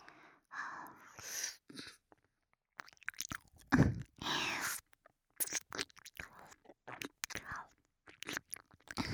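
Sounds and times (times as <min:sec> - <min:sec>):
speech: 0:01.2 - 0:01.9
teeth nibbling and scraping with crunching bites: 0:02.8 - 0:09.0.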